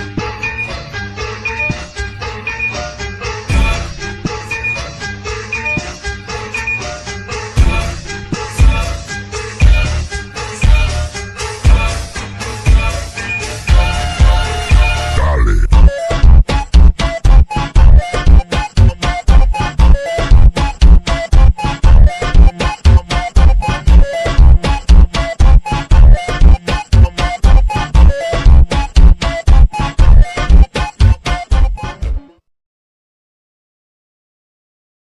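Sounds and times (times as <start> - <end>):
boosted bass: 3.5 - 4.8, 7.6 - 32.2.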